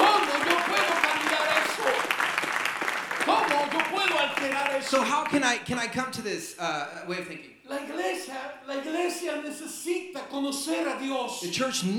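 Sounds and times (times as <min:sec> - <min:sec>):
audience applause: 0:00.0 - 0:05.4
speech: 0:04.8 - 0:11.9.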